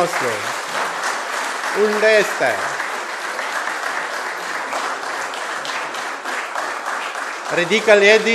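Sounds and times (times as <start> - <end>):
speech: 0.0 - 0.6, 1.7 - 2.9, 7.5 - 8.3
audience applauding: 0.0 - 8.3.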